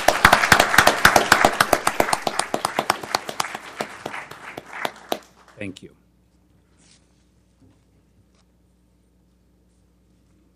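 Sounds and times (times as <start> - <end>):
audience applause for a group of young people: 0.0 - 5.7
speech: 5.6 - 6.0.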